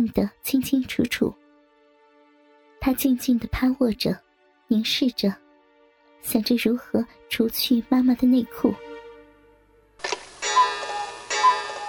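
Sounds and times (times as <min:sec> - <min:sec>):
speech: 0:00.0 - 0:01.4, 0:02.8 - 0:05.4, 0:06.2 - 0:08.8
living-room clock striking at midnight: 0:10.4 - 0:11.8.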